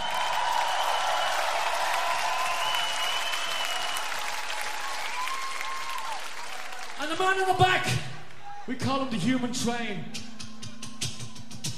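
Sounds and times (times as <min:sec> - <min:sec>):
audience applause: 0:00.0 - 0:07.6
speech: 0:07.1 - 0:08.1, 0:08.7 - 0:10.3.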